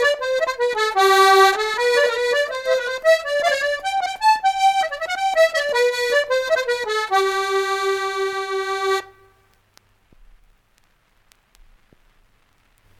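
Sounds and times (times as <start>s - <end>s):
Sliabh Luachra hornpipes in Kerry music: 0.0s - 9.4s.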